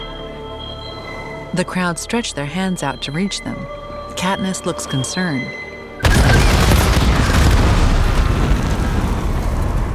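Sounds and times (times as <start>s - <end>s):
speech: 1.5s - 5.6s
loud explosion: 6.0s - 9.9s
rumbling roar of debris and low booming: 6.1s - 9.9s.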